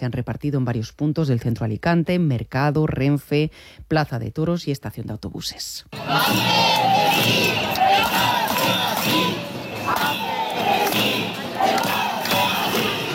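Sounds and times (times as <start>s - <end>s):
speech: 0.0s - 7.6s
protesting teachers chanting slogans in street: 6.0s - 13.1s.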